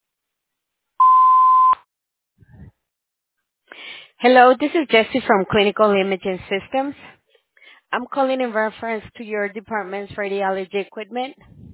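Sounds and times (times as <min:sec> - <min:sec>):
voicemail tone: 0:01.0 - 0:01.8
speech: 0:04.2 - 0:07.2, 0:07.9 - 0:11.6.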